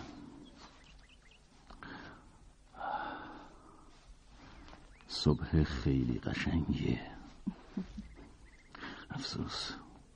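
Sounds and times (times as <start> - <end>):
birds chirping: 0.0 - 10.1
deep breath of fresh morning air: 1.8 - 4.6
speech: 5.2 - 8.1, 9.2 - 9.8.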